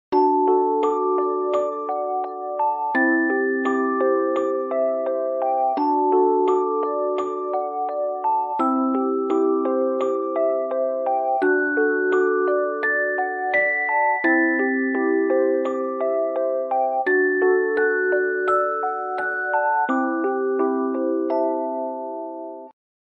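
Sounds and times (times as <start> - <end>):
music box: 0.1 - 22.8.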